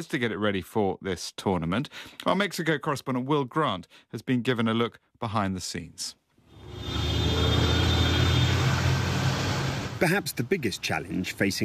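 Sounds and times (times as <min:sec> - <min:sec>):
speech: 0:00.0 - 0:07.0, 0:10.0 - 0:11.6
Mexico City road traffic: 0:06.5 - 0:11.6.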